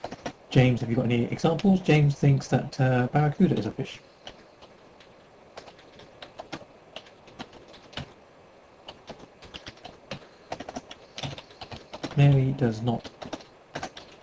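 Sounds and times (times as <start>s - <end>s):
typing on a computer keyboard: 0.0s - 0.4s, 4.2s - 8.1s, 8.8s - 12.4s, 13.0s - 14.2s
speech: 0.5s - 4.1s, 12.6s - 13.2s.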